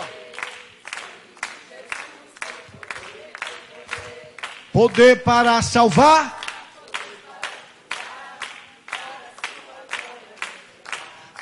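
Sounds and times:
group clapping hands: 0.0 - 11.4
speech: 4.8 - 6.4.

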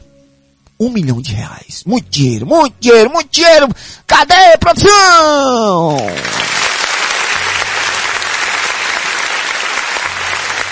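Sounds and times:
speech: 0.8 - 6.6
applause: 5.9 - 10.6.

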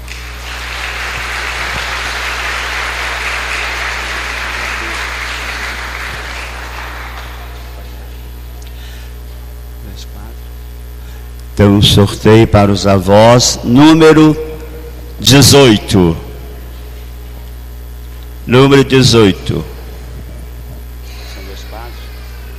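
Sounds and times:
crowd applause: 0.0 - 8.3
low electrical hum: 0.0 - 22.5
speech: 11.6 - 14.5, 15.2 - 16.2, 18.5 - 19.7.

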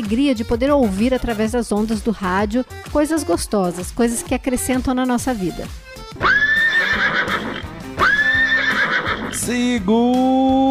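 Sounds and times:
speech: 0.0 - 6.3, 9.5 - 10.6
horse neighing: 6.2 - 9.5.

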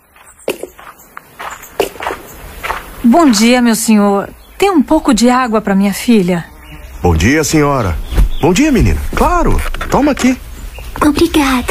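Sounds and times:
footsteps of people walking outdoors on a path toward a hill: 0.0 - 11.6
speech: 3.0 - 10.4, 11.0 - 11.6.

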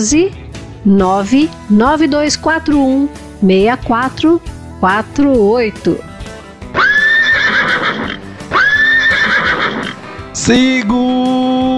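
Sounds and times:
speech: 0.0 - 6.1, 10.4 - 11.7
horse neighing as wild little horse mascot sound: 6.7 - 10.3.

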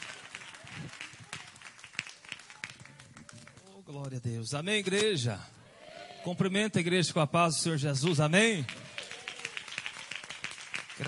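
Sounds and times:
applause: 0.0 - 3.8, 8.0 - 11.0
speech: 3.9 - 5.6, 6.2 - 8.8.

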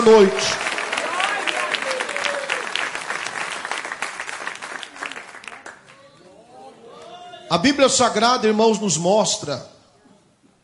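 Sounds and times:
speech: 0.0 - 0.7, 7.5 - 9.7
audience applause: 0.0 - 6.0.

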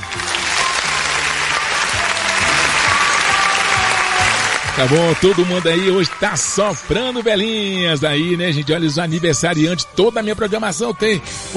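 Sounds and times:
audience applause: 0.0 - 8.4
speech: 4.8 - 11.5.

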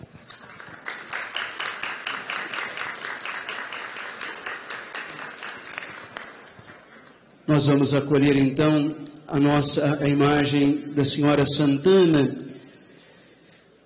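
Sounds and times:
warm round of applause: 0.0 - 7.3
speech: 7.5 - 12.4.

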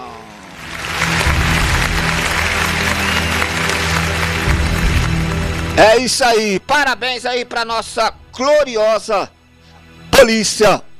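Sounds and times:
played applause sound effect: 0.0 - 6.5
speech: 5.8 - 9.4, 10.2 - 10.9.

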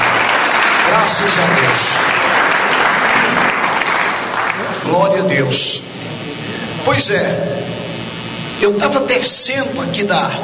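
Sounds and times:
church congregation applauding: 0.0 - 5.6
speech: 1.0 - 3.6, 4.8 - 5.9, 6.8 - 7.8, 8.6 - 10.4.

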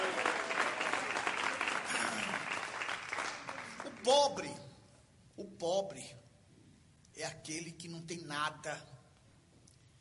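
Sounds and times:
audience clapping: 0.0 - 4.5
speech: 4.1 - 4.6, 5.4 - 6.2, 7.2 - 8.9.

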